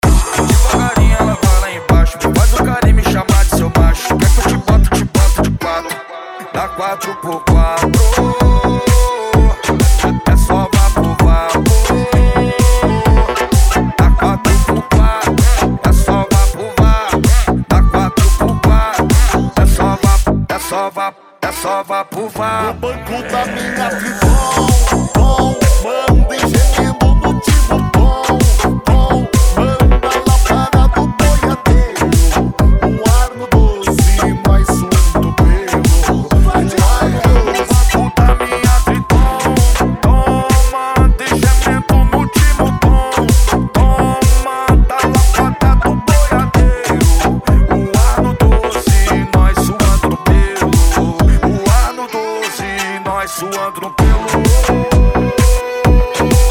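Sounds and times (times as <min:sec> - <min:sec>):
sertanejo remix: 0:00.0 - 0:56.5.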